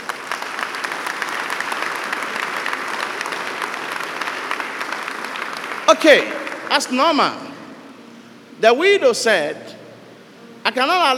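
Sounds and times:
audience applause: 0:00.0 - 0:07.2
speech: 0:05.9 - 0:07.5, 0:08.6 - 0:09.8, 0:10.6 - 0:11.1.

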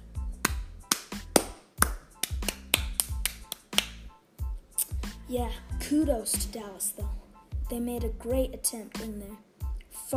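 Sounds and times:
hand clapping: 0:00.4 - 0:04.1
speech: 0:05.3 - 0:09.5.

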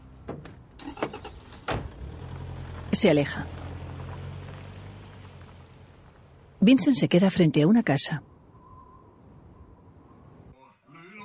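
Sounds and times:
person getting into a car: 0:00.2 - 0:02.1
speech: 0:03.0 - 0:03.6, 0:06.6 - 0:08.3.

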